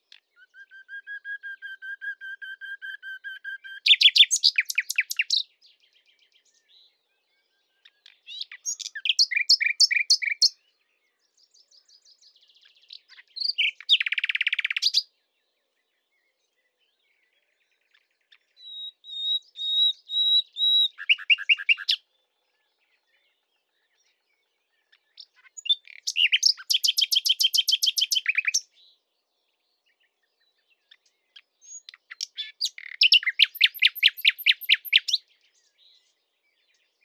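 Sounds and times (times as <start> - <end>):
Common Nightingale Luscinia megarhynchos singing: 0.0 - 7.0, 7.7 - 10.7, 11.4 - 15.1, 17.8 - 22.0, 24.0 - 29.0, 30.4 - 37.0.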